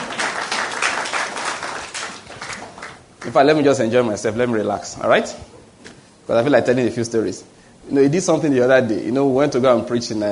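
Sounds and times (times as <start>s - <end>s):
audience clapping: 0.0s - 3.6s
speech: 3.2s - 5.5s, 6.3s - 10.3s.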